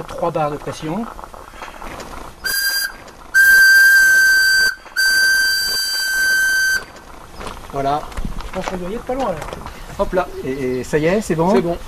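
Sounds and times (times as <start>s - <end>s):
speech: 0.0s - 1.2s, 7.8s - 11.8s
steam car boiler purging with whistling release: 2.4s - 7.0s.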